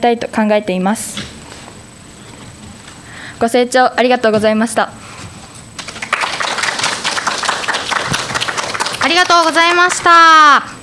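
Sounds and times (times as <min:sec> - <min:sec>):
speech: 0:00.0 - 0:01.3, 0:03.4 - 0:05.0, 0:09.1 - 0:10.7
audience applause: 0:05.8 - 0:10.2.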